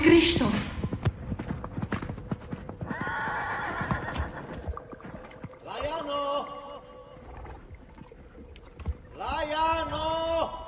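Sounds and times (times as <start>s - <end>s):
speech: 0.0s - 0.8s
horse hooves trotting: 0.0s - 6.1s, 7.0s - 10.2s
horse whinnying: 2.8s - 4.7s.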